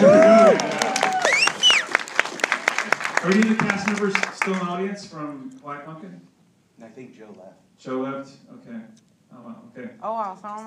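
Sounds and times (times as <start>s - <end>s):
crowd cheering with whoops and shouts: 0.0s - 4.5s
scattered hand claps: 0.4s - 4.6s
speech: 3.3s - 10.6s.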